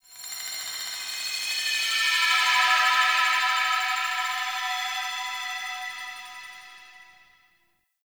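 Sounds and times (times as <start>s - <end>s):
glassy ambient texture: 0.6s - 7.4s.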